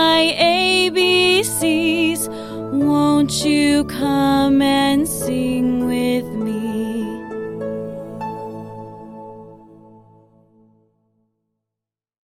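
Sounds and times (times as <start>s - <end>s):
American songs: 0.0s - 7.6s.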